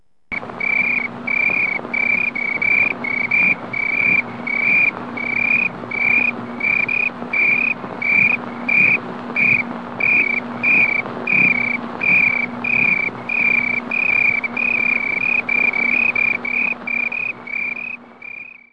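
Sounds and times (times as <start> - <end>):
cricket chirping: 0.3 - 18.7.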